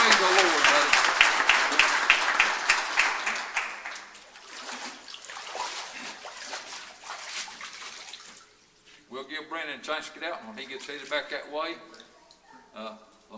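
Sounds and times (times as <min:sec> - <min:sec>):
applause: 0:00.0 - 0:04.2
speech: 0:09.8 - 0:12.1, 0:12.8 - 0:13.3.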